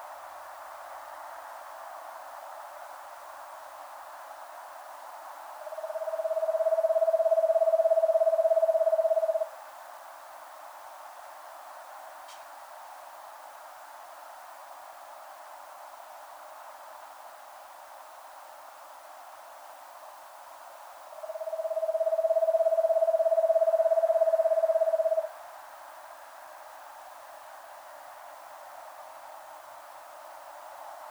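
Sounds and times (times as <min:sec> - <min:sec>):
Eastern Screech Owl Megascops asio calling: 0:05.6 - 0:09.5, 0:21.2 - 0:25.3.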